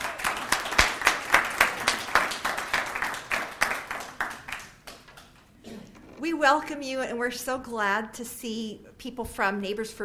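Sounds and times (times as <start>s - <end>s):
audience at a book event applauding: 0.0s - 6.2s
speech: 6.3s - 10.0s.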